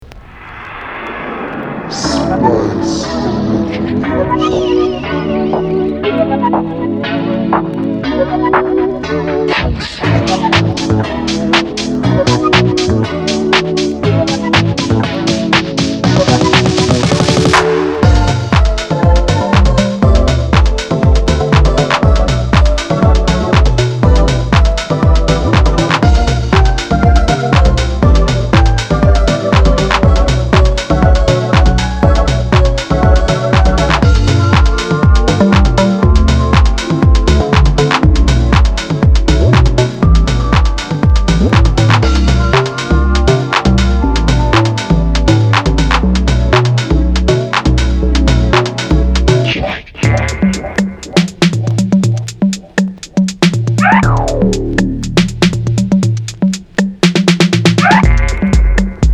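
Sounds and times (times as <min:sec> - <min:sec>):
lofi house music: 0:01.9 - 0:59.1.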